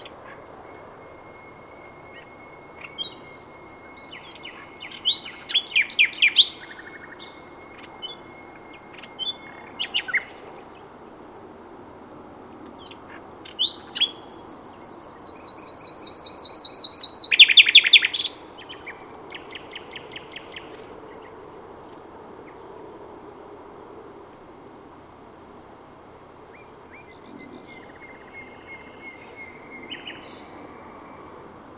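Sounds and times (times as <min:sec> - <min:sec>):
common nightingale singing: 0:00.0 - 0:10.7, 0:12.8 - 0:21.4, 0:26.6 - 0:31.4
faint steady tone: 0:00.0 - 0:31.7.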